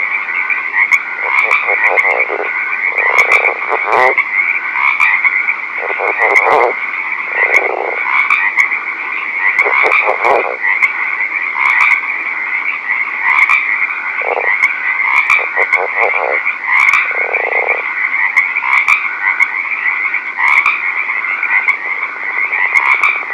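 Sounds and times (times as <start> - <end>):
northern leopard frog calling: 0.0 - 12.1, 12.9 - 23.3.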